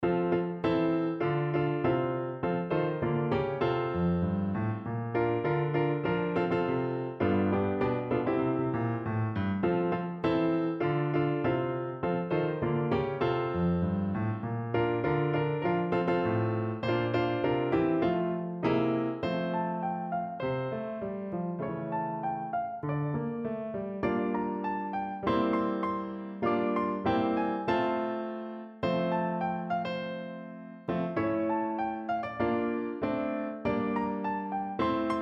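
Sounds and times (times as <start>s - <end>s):
piano: 0.0s - 35.2s.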